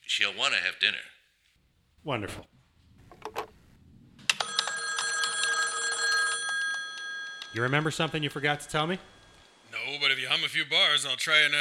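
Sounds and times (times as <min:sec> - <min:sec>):
speech: 0:00.1 - 0:01.2, 0:02.0 - 0:02.5, 0:07.5 - 0:09.1, 0:09.8 - 0:11.6
telephone ringing with metallic bell: 0:04.3 - 0:09.7.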